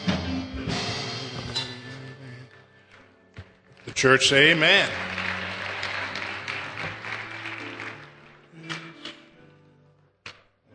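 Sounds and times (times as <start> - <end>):
church audience applause: 3.8 - 8.5
speech: 3.9 - 5.1.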